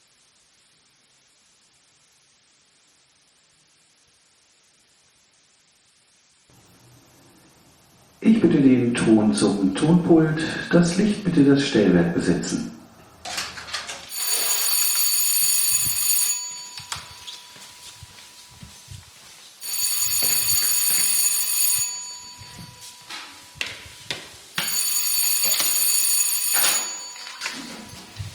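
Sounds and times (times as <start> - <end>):
speech: 8.3 - 12.8
electric theatre signal tone calling the audience to their seats: 14.1 - 28.3.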